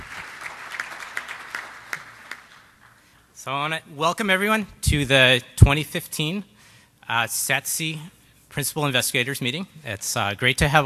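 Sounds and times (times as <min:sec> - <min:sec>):
audience applause: 0:00.0 - 0:03.0
speech: 0:03.4 - 0:06.5, 0:07.1 - 0:10.8.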